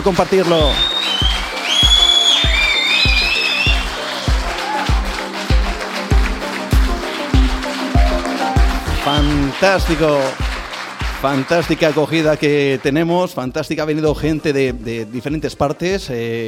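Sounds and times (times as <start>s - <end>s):
speech: 0.0s - 1.3s, 9.1s - 10.4s, 11.2s - 16.4s
audience applause: 0.0s - 13.0s.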